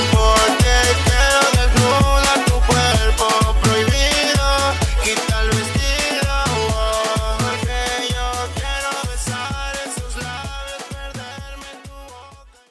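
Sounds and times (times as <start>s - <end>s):
club dance drum beat: 0.0s - 12.7s.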